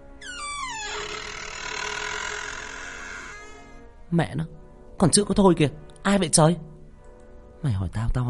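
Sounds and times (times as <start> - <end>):
door creaking as it is dragged: 0.0 - 3.9
speech: 4.1 - 6.7, 7.6 - 8.2.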